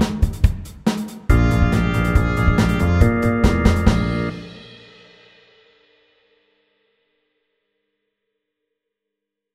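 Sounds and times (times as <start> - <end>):
fast eight-bar blues at 140 BPM: 0.0 - 4.7.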